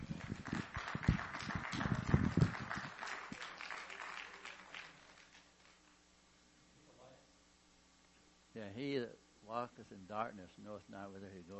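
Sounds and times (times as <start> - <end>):
audience clapping at a religious gathering: 0.0 - 6.0
speech: 8.7 - 11.5.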